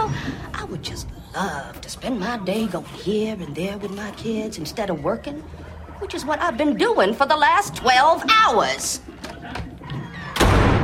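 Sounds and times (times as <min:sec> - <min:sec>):
speech: 0:01.4 - 0:09.6
door slamming: 0:10.3 - 0:10.8.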